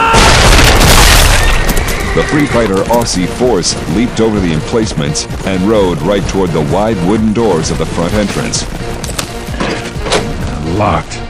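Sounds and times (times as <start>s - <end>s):
grenades exploding: 0.1s - 2.0s
speech: 2.2s - 9.0s, 10.8s - 11.2s.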